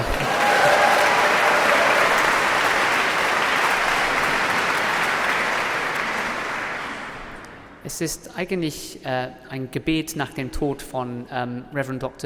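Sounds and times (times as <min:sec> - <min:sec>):
audience applause: 0:00.0 - 0:07.5
speech: 0:07.9 - 0:12.2.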